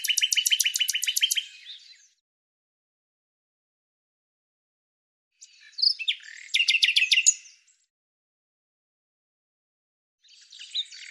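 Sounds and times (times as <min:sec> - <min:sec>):
bird song with scratchy notes and a run of high sharp notes: 0:00.0 - 0:02.2, 0:05.3 - 0:07.9, 0:10.2 - 0:11.0.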